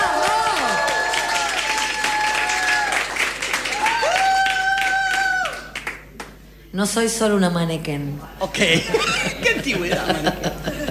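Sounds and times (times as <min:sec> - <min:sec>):
audience applause: 0:00.0 - 0:06.1
speech: 0:06.8 - 0:10.6
laughter: 0:08.5 - 0:10.8.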